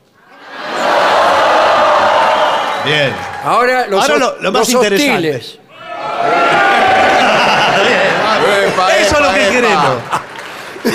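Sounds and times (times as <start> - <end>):
audience shouting on cue: 0.3 - 4.2, 5.7 - 10.0
speech: 2.9 - 5.6, 9.1 - 10.2
laughter: 6.3 - 10.9.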